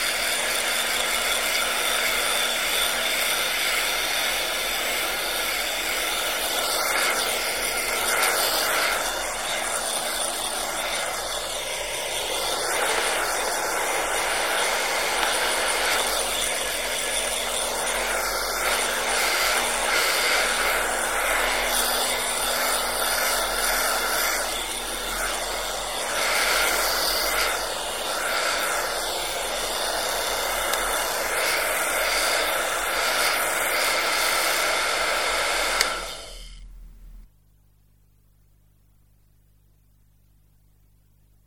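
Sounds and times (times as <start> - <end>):
hair dryer: 0.0 - 36.8.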